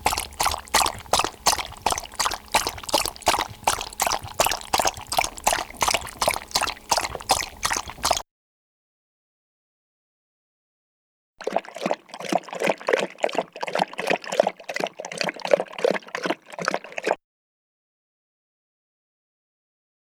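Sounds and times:
dog eating: 0.0 - 8.2, 11.4 - 17.2.

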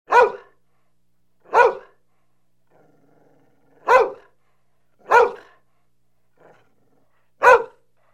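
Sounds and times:
dog barking: 0.1 - 0.6, 1.4 - 2.0, 3.8 - 4.4, 5.0 - 5.6, 7.4 - 7.9.

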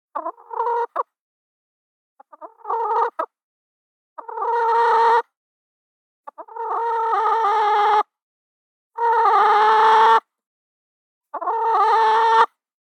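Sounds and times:
chicken giving loud nasal squawking clucks: 0.2 - 1.1, 2.2 - 3.3, 4.2 - 5.3, 6.3 - 8.1, 9.0 - 10.2, 11.3 - 12.6.

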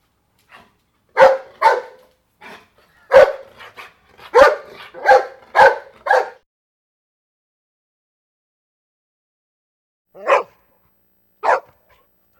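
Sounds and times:
medium-sized dog barking: 0.5 - 6.4, 10.2 - 10.6, 11.4 - 12.1.

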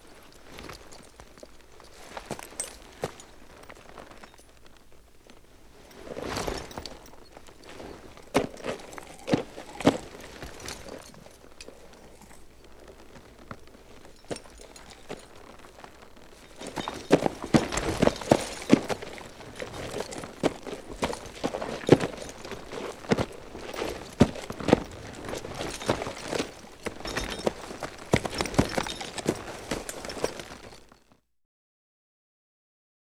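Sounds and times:
horse bridle jingling: 0.0 - 31.0
horse hoof knocks: 6.4 - 30.9.

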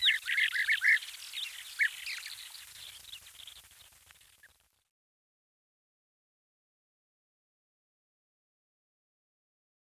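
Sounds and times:
lesser short-toed lark song: 0.0 - 3.7.

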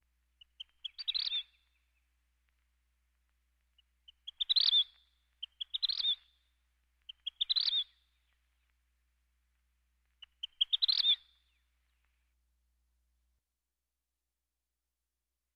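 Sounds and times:
vermilion flycatcher singing: 0.4 - 1.7, 4.1 - 6.3, 7.1 - 8.0, 10.2 - 11.4.

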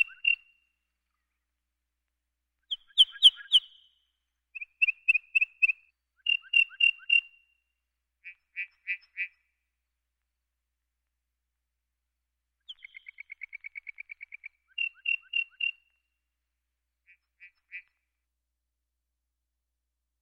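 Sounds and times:
lark song with high clipped tinkling notes and trill: 0.0 - 0.6, 2.7 - 4.0, 4.6 - 7.4, 12.6 - 15.9.

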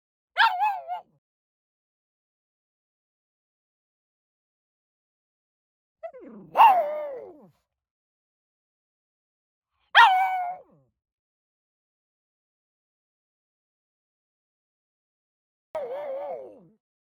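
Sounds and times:
pug barking: 0.4 - 1.0, 6.5 - 7.0, 10.0 - 10.5.

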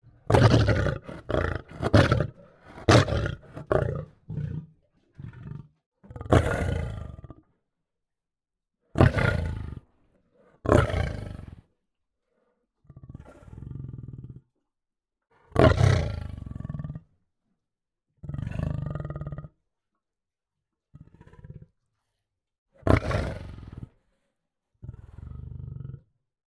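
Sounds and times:
lion snarling: 0.2 - 7.4, 9.0 - 9.8, 10.4 - 11.6, 15.4 - 17.0, 21.0 - 21.7, 22.8 - 23.9, 24.8 - 26.0.

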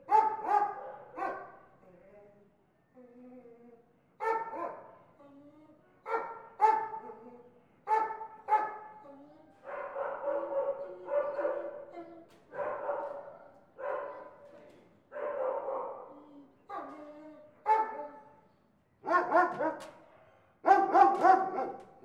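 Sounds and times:
dogs barking: 0.0 - 1.6, 4.2 - 4.9, 6.1 - 7.1, 7.9 - 8.9, 9.6 - 11.9, 12.5 - 14.4, 15.1 - 16.1, 17.7 - 18.2, 19.0 - 20.0, 20.6 - 22.0.

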